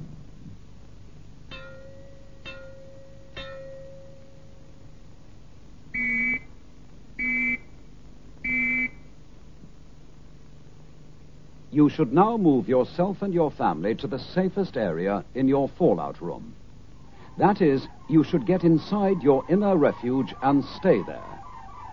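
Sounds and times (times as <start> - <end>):
civil defence fallout warning signal: 6.0 - 6.6, 7.2 - 7.7, 8.4 - 9.1, 17.0 - 21.9
speech: 11.8 - 16.6, 17.4 - 21.3.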